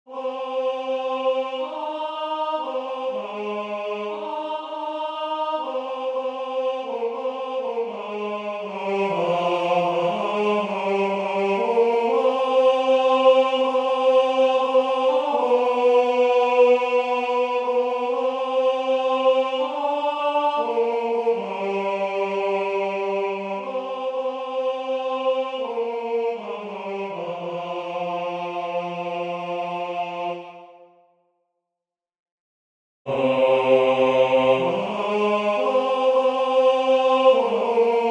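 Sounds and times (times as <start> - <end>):
tenor singing: 0.1 - 30.7, 33.1 - 38.0.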